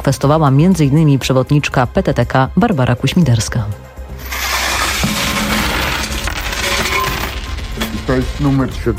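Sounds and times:
speech: 0.0 - 4.4, 8.1 - 8.9
coins and banknotes from a charity collection can poured and counted in Lublin: 4.2 - 8.6.

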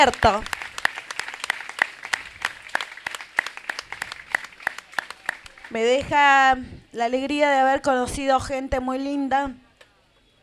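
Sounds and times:
speech: 0.0 - 0.6, 5.7 - 9.6
audience applause at a cultural event: 0.0 - 6.1.

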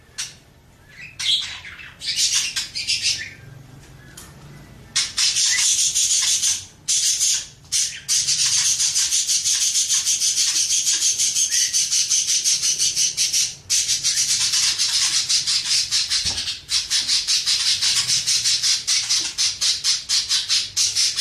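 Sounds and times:
birds chirping: 0.0 - 21.1.

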